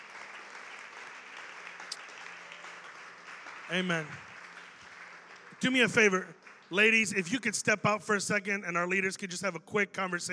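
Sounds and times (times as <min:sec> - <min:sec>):
crowd applause: 0:00.0 - 0:07.5
speech: 0:03.7 - 0:04.3, 0:05.6 - 0:10.3.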